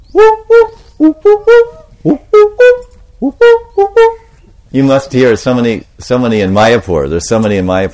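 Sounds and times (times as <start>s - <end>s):
human voice imitating a cuckoo's call: 0.0s - 4.4s
speech: 4.8s - 7.9s.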